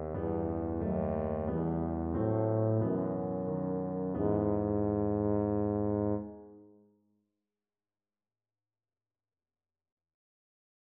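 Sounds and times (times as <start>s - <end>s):
tuba: 0.0s - 6.8s.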